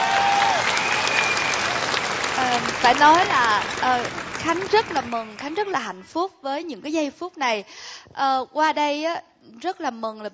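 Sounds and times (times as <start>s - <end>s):
stage show audience applause for a performer: 0.0s - 5.8s
speech: 2.8s - 10.3s.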